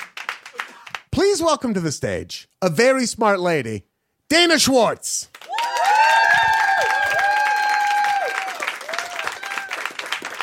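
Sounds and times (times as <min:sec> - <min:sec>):
audience clapping: 0:00.0 - 0:01.2, 0:05.3 - 0:10.4
speech: 0:01.2 - 0:05.3.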